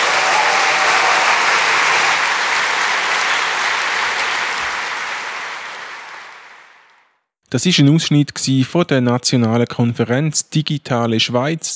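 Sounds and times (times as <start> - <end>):
audience applause: 0.0 - 7.0
speech: 7.5 - 11.7.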